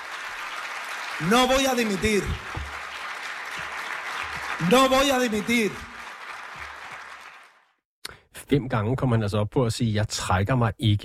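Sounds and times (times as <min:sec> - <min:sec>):
applause in background of speech: 0:00.0 - 0:07.8
speech: 0:01.2 - 0:02.6, 0:04.6 - 0:05.9, 0:08.5 - 0:11.0.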